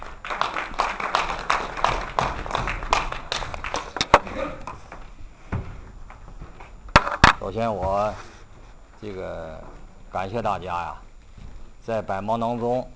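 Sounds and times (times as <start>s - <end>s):
warm audience applause: 0.0s - 5.1s
speech: 7.6s - 8.3s, 9.0s - 11.0s, 11.9s - 12.9s.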